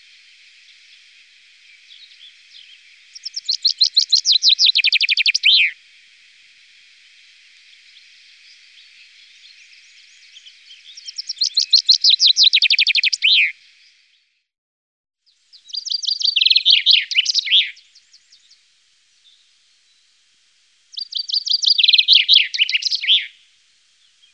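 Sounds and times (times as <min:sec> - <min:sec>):
Common chaffinch trilling song: 0:00.0 - 0:14.2, 0:15.3 - 0:20.1, 0:20.9 - 0:24.3.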